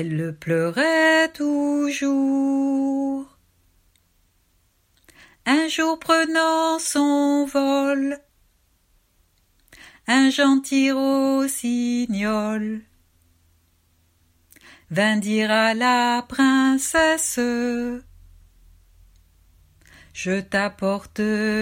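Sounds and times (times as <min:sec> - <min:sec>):
person singing lyrics and melody: 0:00.0 - 0:03.4, 0:05.4 - 0:08.3, 0:09.7 - 0:12.9, 0:14.6 - 0:18.1, 0:19.8 - 0:21.5.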